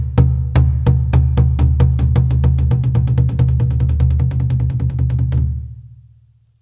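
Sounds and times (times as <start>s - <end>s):
drum roll: 0.2s - 5.6s.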